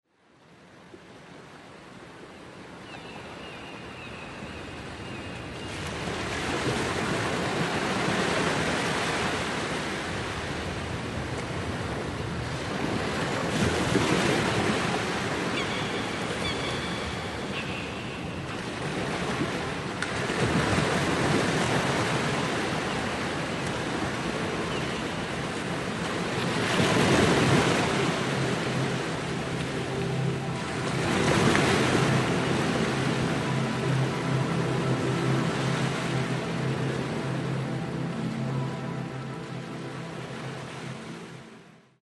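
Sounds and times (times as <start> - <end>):
waves: 0.1 - 42.0.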